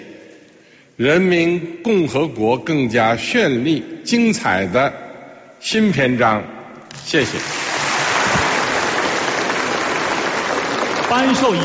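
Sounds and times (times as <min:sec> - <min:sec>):
speech: 0:01.0 - 0:05.0, 0:05.6 - 0:07.6, 0:11.1 - 0:11.6
warm large crowd applause: 0:07.4 - 0:11.6.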